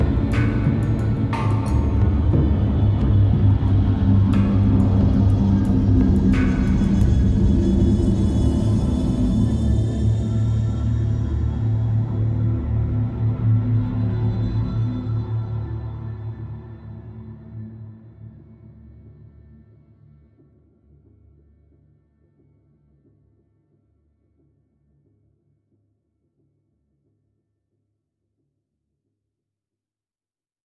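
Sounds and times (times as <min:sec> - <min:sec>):
tense music loop: 0:00.0 - 0:15.5.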